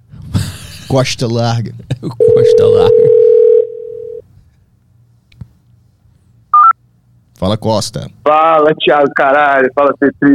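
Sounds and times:
speech: 0:00.9 - 0:03.3, 0:07.4 - 0:10.3
telephone ringback tone while placing a phone call: 0:02.2 - 0:04.2.

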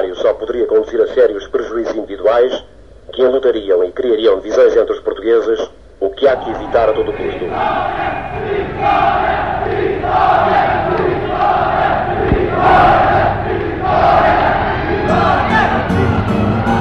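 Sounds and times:
speech: 0:00.4 - 0:09.4
steady roar of voices: 0:06.4 - 0:15.9
large crowd chanting a rallying cry: 0:06.4 - 0:16.7.

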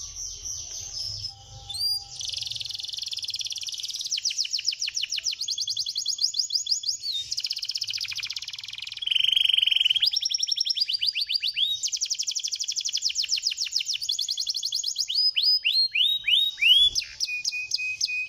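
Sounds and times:
bird song with buzzy trills: 0:00.0 - 0:18.2.

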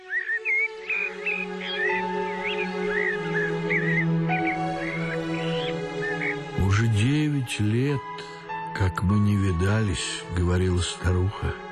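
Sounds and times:
rooks cawing in a garden in spring: 0:00.0 - 0:06.6
starlings singing in a garden in spring: 0:00.0 - 0:11.7
speech: 0:07.5 - 0:08.1, 0:08.8 - 0:11.6.

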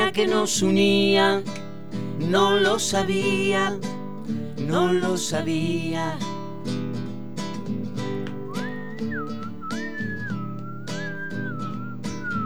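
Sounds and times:
speech: 0:00.2 - 0:06.9
person whistling a sliding melody: 0:08.4 - 0:12.4.

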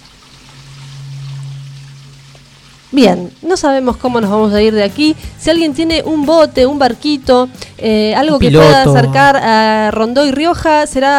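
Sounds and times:
rain: 0:00.0 - 0:04.2
speech: 0:02.9 - 0:11.1.

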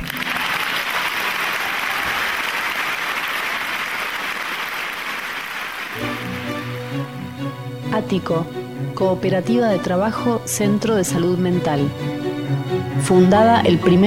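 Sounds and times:
studio applause for the interviewee: 0:00.0 - 0:07.1
speech: 0:08.1 - 0:14.0.

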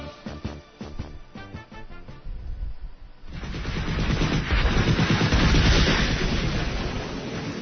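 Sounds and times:
series of loud explosions: 0:03.3 - 0:07.6.

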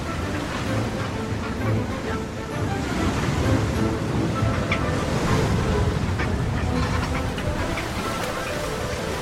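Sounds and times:
surf breaking on a rough lava shore: 0:00.0 - 0:09.1.

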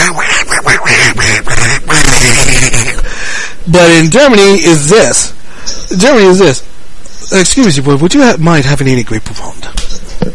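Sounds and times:
raspy nasal cartoon duck voice quacking: 0:00.0 - 0:03.0
speech: 0:03.7 - 0:06.7, 0:07.3 - 0:10.3.

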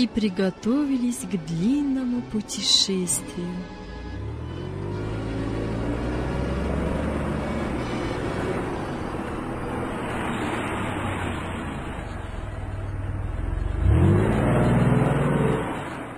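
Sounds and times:
speech: 0:00.0 - 0:03.8
car engine humming on an uneven mountain road: 0:00.0 - 0:16.1.

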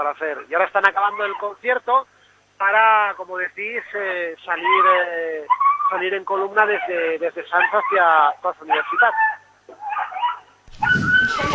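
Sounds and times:
speech: 0:00.0 - 0:09.4
small dog whimpering in the rain: 0:04.6 - 0:06.1, 0:06.7 - 0:11.5.

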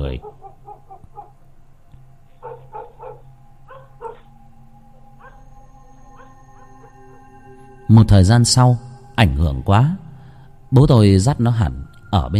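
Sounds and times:
dog barking toward a bamboo thicket: 0:00.0 - 0:01.4, 0:02.4 - 0:04.3, 0:05.2 - 0:05.4, 0:06.2 - 0:07.0
low steady hum: 0:00.0 - 0:12.3
speech: 0:07.9 - 0:10.0, 0:10.7 - 0:12.3.

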